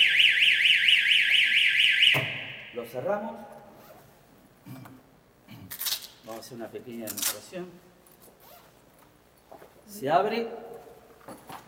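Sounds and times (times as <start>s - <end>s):
defibrillator alarm warbling: 0.0s - 2.8s
speech: 2.9s - 3.6s, 4.7s - 5.0s, 6.3s - 8.0s, 9.9s - 10.7s.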